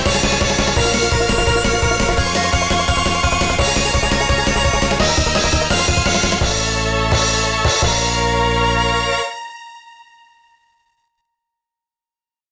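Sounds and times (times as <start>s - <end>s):
dark instrumental music: 0.0s - 10.0s.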